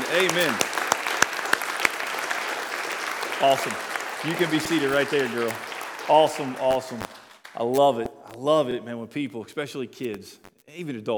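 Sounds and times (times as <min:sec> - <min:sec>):
audience clapping: 0:00.0 - 0:08.2
speech: 0:00.1 - 0:00.7, 0:03.4 - 0:11.1.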